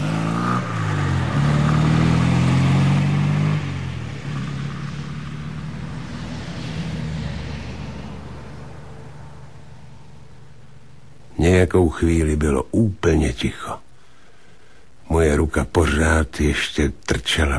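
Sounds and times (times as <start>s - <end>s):
car roaring off: 0.0s - 12.6s
speech: 11.5s - 13.9s, 15.1s - 17.5s.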